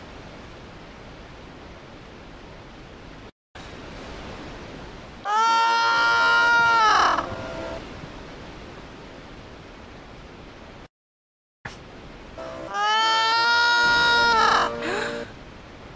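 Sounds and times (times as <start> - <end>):
person crying out: 5.3 - 7.3, 12.7 - 15.3.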